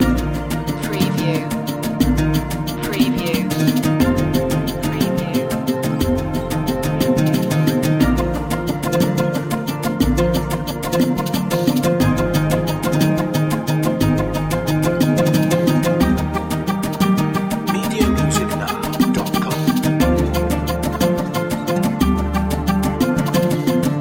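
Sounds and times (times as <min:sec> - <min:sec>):
world dance music loop: 0:00.0 - 0:23.9.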